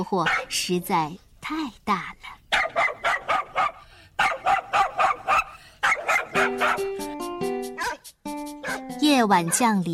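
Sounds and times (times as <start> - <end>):
speech: 0.0 - 2.4, 6.4 - 7.0, 9.1 - 9.9
hound dog barking: 0.2 - 0.6, 2.5 - 7.0, 7.8 - 9.7.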